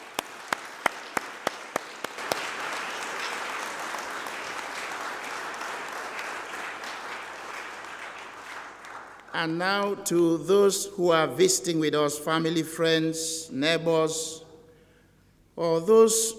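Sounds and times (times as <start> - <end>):
audience applause: 0.0 - 9.4
speech: 9.4 - 14.4, 15.6 - 16.3.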